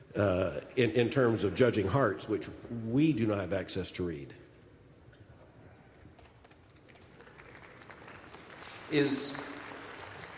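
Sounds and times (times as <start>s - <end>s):
speech: 0.2s - 4.4s, 8.9s - 9.5s
smattering of applause: 6.1s - 10.3s.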